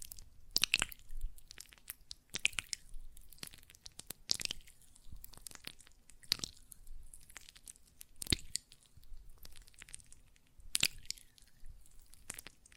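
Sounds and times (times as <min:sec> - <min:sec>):
hands working gel lotion: 0:00.0 - 0:12.7.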